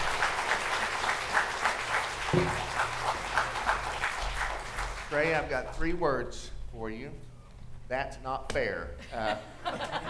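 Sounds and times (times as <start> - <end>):
audience applause: 0.0 - 5.2
speech: 2.3 - 2.7, 5.1 - 7.3, 7.9 - 10.0
laughter: 9.0 - 10.0.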